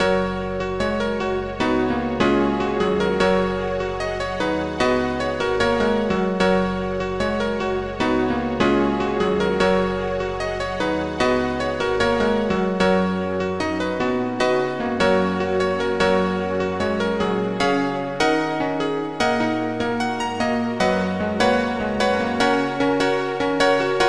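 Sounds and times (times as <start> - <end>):
piano song: 0.0 - 24.0.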